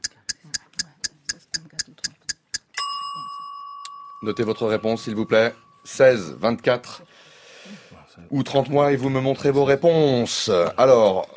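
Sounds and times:
small timer ticking: 0.0 - 3.0
bright high ringing chime: 2.7 - 7.0
speech: 4.2 - 7.1, 7.7 - 11.3.

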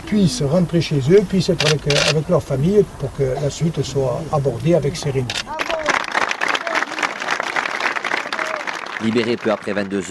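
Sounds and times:
speech: 0.1 - 5.6, 9.0 - 10.0
crowd cheering and clapping: 5.5 - 10.0.

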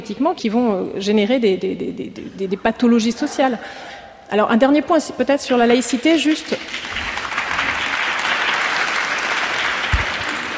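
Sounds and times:
speech: 0.1 - 7.1
audience applause: 6.6 - 10.5.

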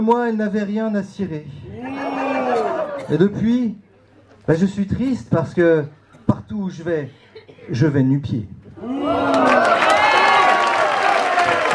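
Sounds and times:
speech: 0.0 - 1.6, 3.1 - 3.8, 4.5 - 9.5
packed audience cheering at a slam poetry event at the Cartonnerie in Reims: 1.7 - 3.2, 8.8 - 11.7.

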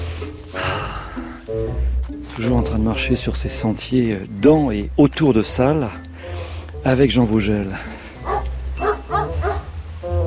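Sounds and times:
speech: 1.5 - 6.0, 6.8 - 7.9
dog barking on a countryside trail through freshly cut hay fields: 8.2 - 9.7.

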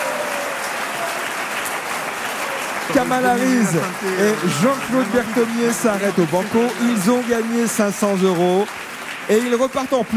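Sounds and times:
studio audience applause at a radio quiz game: 0.0 - 10.1
laughter: 2.9 - 8.0
speech: 2.9 - 10.1.

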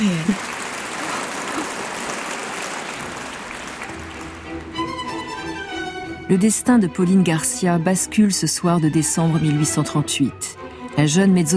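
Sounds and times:
large audience standing and applauding: 0.0 - 6.0
speech: 6.3 - 11.5.

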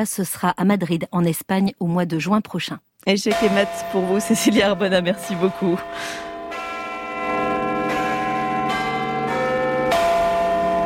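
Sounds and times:
speech: 0.0 - 6.3
Big Ben clock bells chiming: 3.3 - 10.8.

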